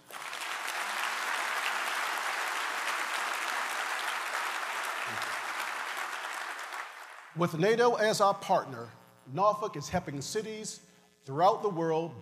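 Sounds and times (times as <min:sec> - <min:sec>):
audience applause welcoming NATO commanders at Norfolk's 2017 State of the City event: 0:00.0 - 0:07.4
speech: 0:07.4 - 0:12.1.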